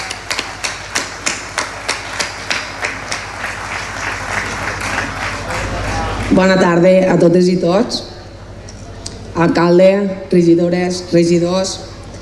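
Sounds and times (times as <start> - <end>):
audience applause: 0.0 - 6.7
speech: 6.4 - 8.1, 9.4 - 11.9.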